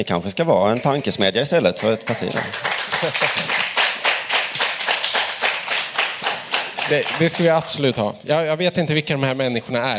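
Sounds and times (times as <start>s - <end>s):
speech: 0.0s - 3.6s, 6.9s - 9.9s
audience applauding spontaneously: 1.8s - 8.0s
laughter: 2.1s - 3.8s.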